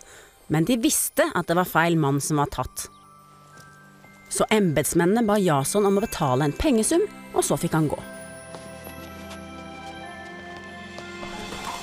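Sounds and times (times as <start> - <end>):
soft sustained music: 0.0 - 11.8
speech: 0.5 - 3.0, 4.4 - 8.1
horses ridden out of a town: 3.3 - 4.6, 5.9 - 11.8.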